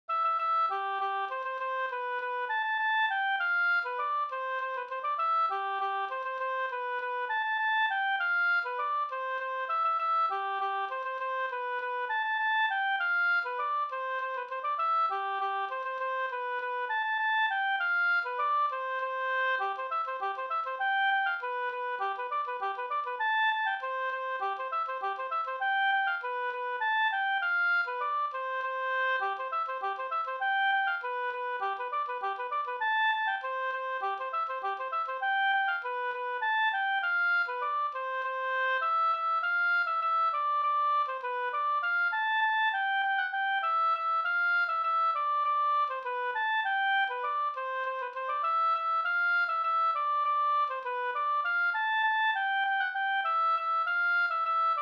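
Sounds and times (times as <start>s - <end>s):
polka music: 0.1s - 54.7s.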